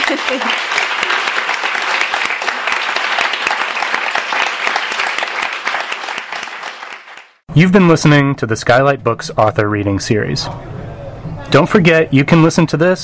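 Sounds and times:
audience applause: 0.0 - 7.4
speech: 0.1 - 0.8, 7.6 - 10.8, 11.5 - 13.0.

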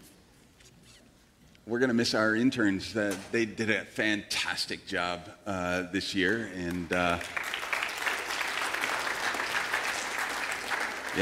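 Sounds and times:
speech: 1.7 - 7.5
church congregation clapping: 6.2 - 11.2.

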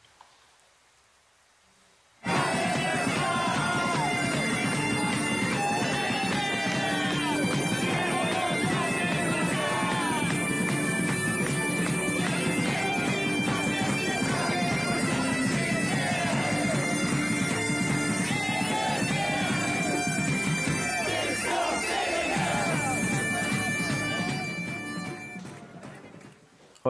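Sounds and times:
crowd chanting: 2.2 - 10.5, 11.8 - 24.5
crowd of protesters roaring and shouting: 2.2 - 26.1.

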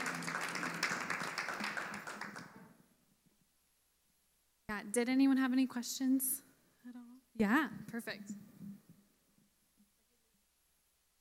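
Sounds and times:
crowd applause: 0.0 - 2.7
speech: 4.8 - 8.4.

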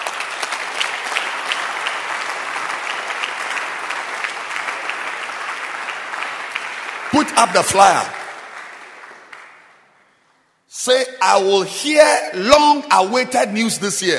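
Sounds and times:
audience clapping: 0.0 - 10.3
speech: 7.2 - 8.2, 10.8 - 14.1.

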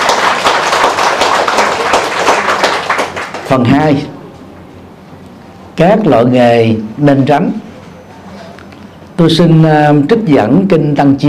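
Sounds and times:
crowd applauding: 0.0 - 3.5
speech: 3.5 - 4.2, 5.8 - 7.6, 9.2 - 11.2.

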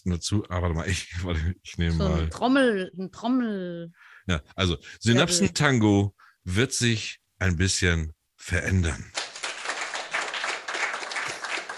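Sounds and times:
speech: 0.0 - 9.2
audience applause: 9.2 - 11.7.

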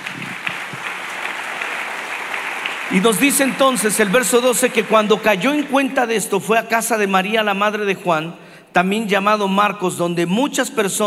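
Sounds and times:
audience applause: 0.0 - 6.4
speech: 2.9 - 11.0.

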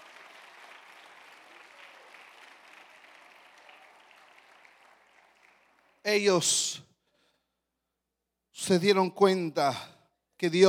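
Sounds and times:
audience applause: 0.0 - 6.0
speech: 6.0 - 6.8, 8.7 - 10.6.

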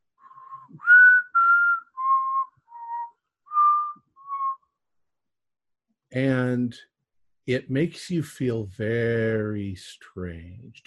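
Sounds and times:
person whistling in imitation of musical whistling of pipes: 0.2 - 4.8
speech: 6.2 - 10.8.

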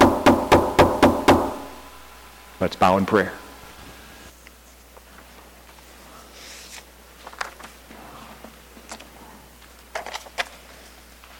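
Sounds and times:
firm knocking on a door: 0.0 - 1.6
speech: 2.6 - 3.4.

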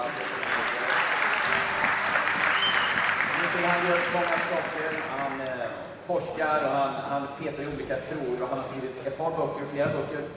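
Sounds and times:
audience applause: 0.0 - 5.8
speech: 3.6 - 10.3.

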